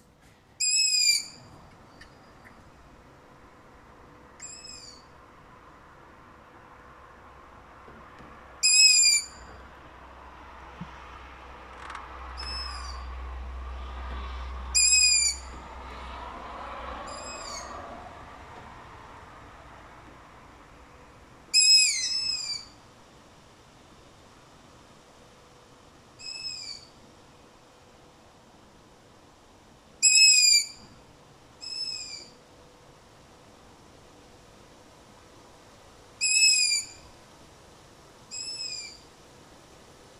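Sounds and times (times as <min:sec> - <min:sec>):
long-eared owl chicks begging calls: 0:00.6 - 0:01.4, 0:04.4 - 0:05.1, 0:08.6 - 0:09.4, 0:12.4 - 0:13.1, 0:14.8 - 0:15.6, 0:17.1 - 0:17.7, 0:21.5 - 0:22.8, 0:26.2 - 0:26.9, 0:30.0 - 0:30.8, 0:31.6 - 0:32.4, 0:36.2 - 0:37.0, 0:38.3 - 0:39.0
low rumble: 0:10.2 - 0:21.3.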